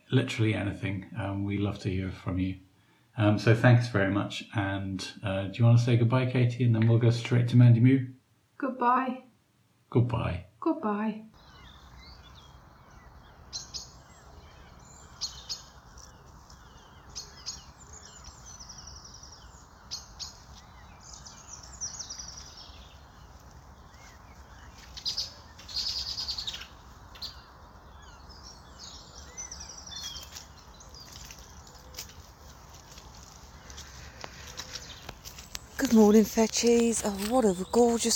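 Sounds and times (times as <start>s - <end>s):
speech: 0.1s - 9.3s, 9.9s - 11.3s, 36.1s - 38.1s
dawn chorus of birds singing: 11.4s - 38.1s.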